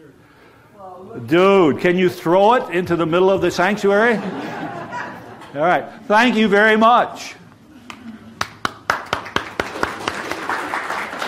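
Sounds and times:
speech: 0.8s - 4.6s, 5.5s - 7.4s
laughter: 3.7s - 6.1s
audience applauding volunteers: 7.9s - 11.2s.

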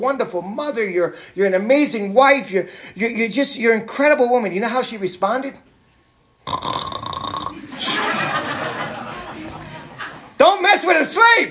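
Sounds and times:
speech: 0.0s - 5.7s, 6.5s - 7.0s, 10.5s - 11.4s
voice imitating snoring: 6.4s - 7.6s
laughter: 7.5s - 10.4s.

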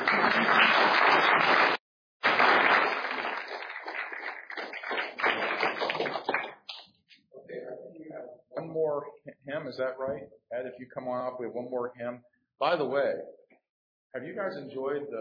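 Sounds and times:
audience clapping: 0.0s - 6.9s
speech: 9.5s - 13.4s, 14.1s - 15.1s.

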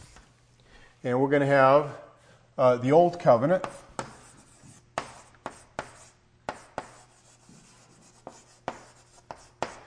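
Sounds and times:
speech: 1.0s - 2.0s, 2.6s - 3.8s
drawing lines on a board: 3.6s - 9.8s.

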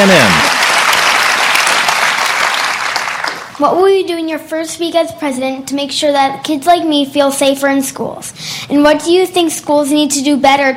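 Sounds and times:
audience applauding at a televised town hall: 0.0s - 3.6s
speech: 3.6s - 10.7s.

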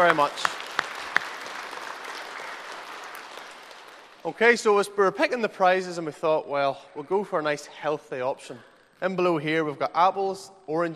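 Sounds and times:
speech: 0.0s - 0.6s, 4.2s - 10.9s
audience applause: 0.0s - 4.3s.

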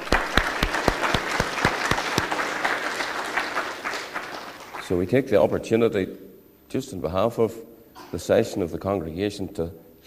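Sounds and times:
audience applause: 0.0s - 4.9s
speech: 4.9s - 10.0s.

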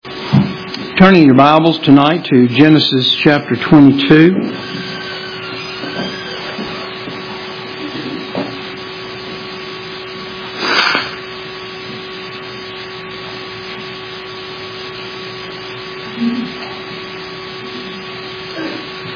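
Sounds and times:
speech: 1.0s - 4.8s
nose blowing: 10.5s - 11.3s.

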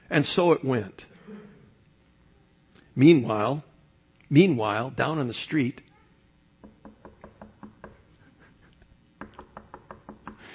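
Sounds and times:
speech: 0.1s - 1.1s, 3.0s - 3.7s, 4.3s - 5.9s
knocking on a door: 6.6s - 8.1s, 9.2s - 10.4s.

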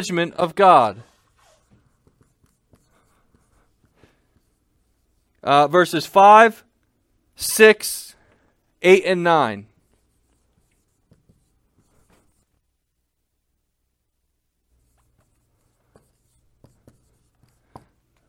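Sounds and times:
speech: 0.0s - 1.1s, 5.4s - 6.7s, 7.4s - 8.2s, 8.8s - 9.7s
handwriting on a board: 1.0s - 5.4s, 9.7s - 12.6s, 14.7s - 18.2s.

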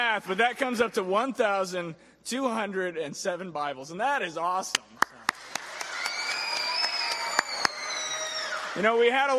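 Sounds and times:
speech: 0.0s - 5.0s, 8.8s - 9.3s
audience applause: 5.0s - 9.3s.

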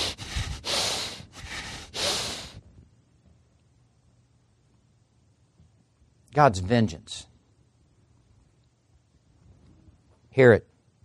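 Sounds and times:
heavy angry breathing through the nostrils: 0.0s - 2.6s
speech: 6.4s - 7.3s, 10.4s - 10.7s.

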